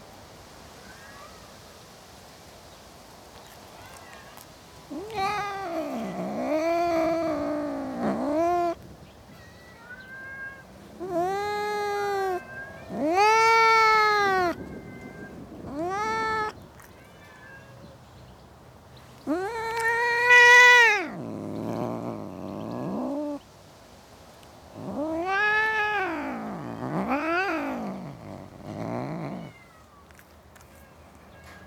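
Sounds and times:
cat yowling: 0:04.9 - 0:08.8, 0:09.4 - 0:16.6, 0:19.2 - 0:23.4, 0:24.8 - 0:30.2.

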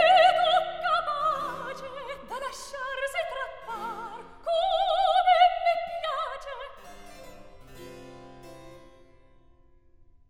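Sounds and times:
recitative singing: 0:00.0 - 0:06.8.

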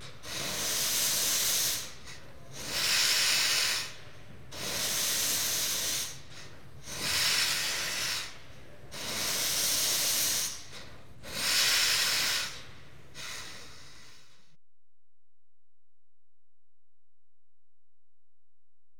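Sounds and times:
static steam engine: 0:00.0 - 0:14.3.

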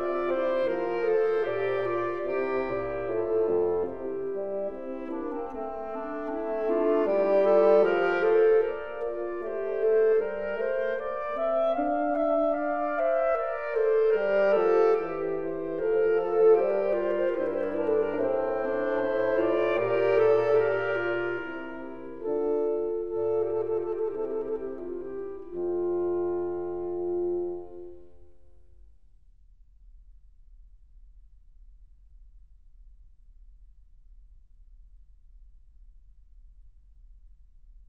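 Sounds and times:
slow music piece: 0:00.0 - 0:28.7.

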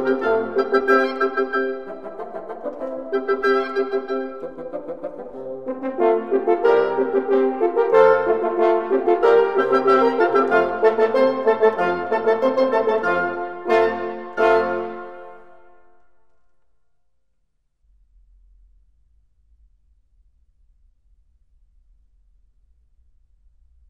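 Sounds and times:
wind instruments playing a divertimento in F: 0:00.0 - 0:16.4.

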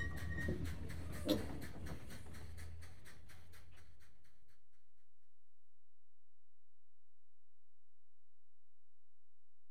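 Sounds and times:
steam crane shunting coal trucks: 0:00.0 - 0:04.5.

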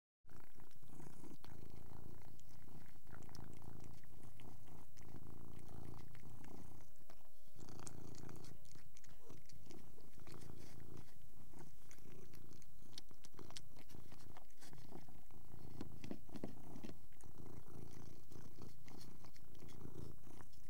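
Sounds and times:
cat: 0:00.3 - 0:20.6.

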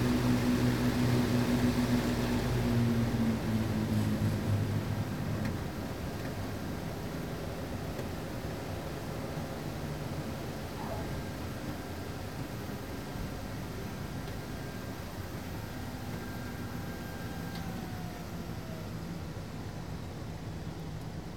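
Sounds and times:
aircraft descending and landing: 0:00.0 - 0:21.2.

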